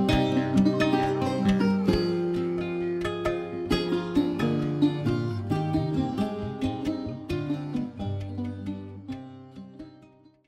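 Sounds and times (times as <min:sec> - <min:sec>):
moving strings: 0:00.0 - 0:10.4.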